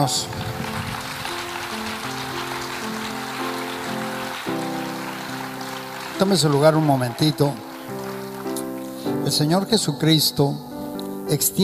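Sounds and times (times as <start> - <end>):
speech: 0.0 - 0.5, 6.2 - 7.6, 9.3 - 10.7, 11.3 - 11.6
audience clapping: 0.0 - 9.6
sustained keyboard chords: 0.0 - 11.6.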